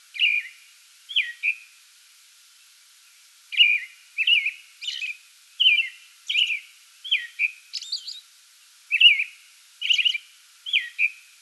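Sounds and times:
American robin song: 0:00.1 - 0:01.7, 0:03.5 - 0:08.3, 0:08.9 - 0:11.2.

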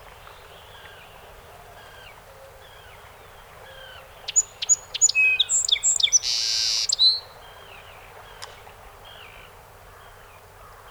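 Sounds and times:
song sparrow song: 0:00.0 - 0:10.8.

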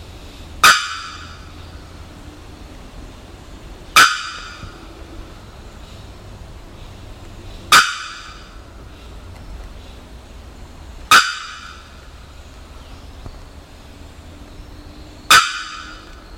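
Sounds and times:
bearded bellbird loud metallic bocks: 0:00.5 - 0:02.0, 0:03.9 - 0:05.3, 0:07.7 - 0:09.1, 0:11.1 - 0:12.5, 0:15.3 - 0:16.2.

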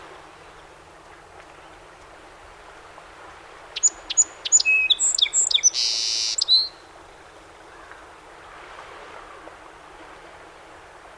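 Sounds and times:
song sparrow song: 0:03.8 - 0:06.8.

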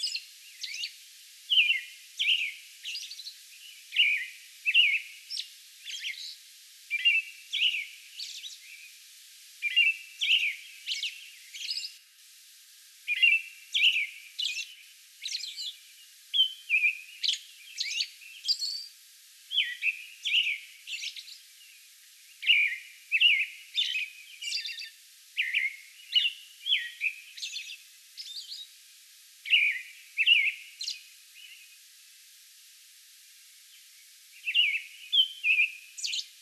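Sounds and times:
American robin whistled caroling song: 0:01.5 - 0:03.2, 0:03.9 - 0:05.1, 0:05.9 - 0:08.5, 0:09.6 - 0:12.0, 0:13.1 - 0:14.7, 0:16.4 - 0:18.8, 0:19.5 - 0:21.3, 0:22.4 - 0:28.6, 0:29.5 - 0:31.0, 0:34.4 - 0:36.3.

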